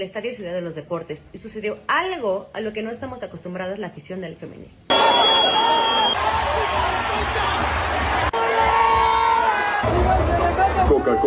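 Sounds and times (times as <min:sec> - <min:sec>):
speech: 0:00.0 - 0:08.1, 0:09.8 - 0:11.2
whistles in stadium crowd: 0:04.9 - 0:06.2
cheers in stadium crowd: 0:04.9 - 0:11.2
stadium crowd roaring and shouting at football match: 0:04.9 - 0:11.2.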